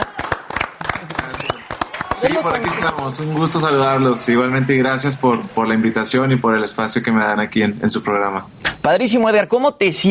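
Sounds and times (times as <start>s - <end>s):
applause: 0.0s - 6.4s
speech: 2.2s - 10.1s.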